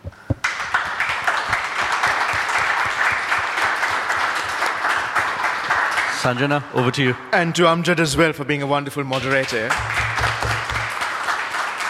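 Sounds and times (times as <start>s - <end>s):
audience applause for panelists at a panel discussion: 0.4s - 6.6s, 9.2s - 11.8s
speech: 6.2s - 10.0s.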